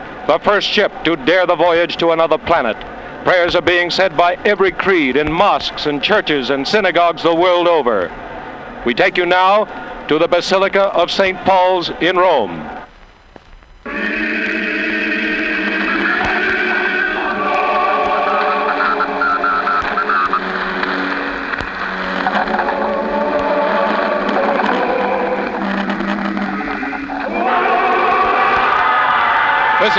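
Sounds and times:
speech: 0:00.2 - 0:08.2, 0:08.8 - 0:12.8
crowd roaring and cheering: 0:13.9 - 0:29.9.

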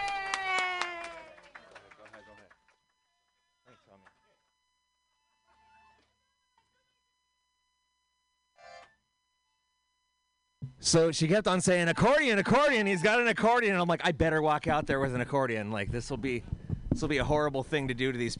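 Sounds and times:
audience clapping: 0:00.0 - 0:04.2
speech: 0:10.8 - 0:18.3.

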